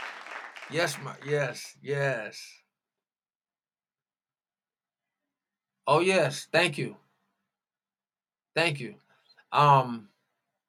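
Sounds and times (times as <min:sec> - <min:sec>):
clapping: 0:00.0 - 0:01.6
speech: 0:00.7 - 0:02.6, 0:05.9 - 0:07.0, 0:08.6 - 0:10.1.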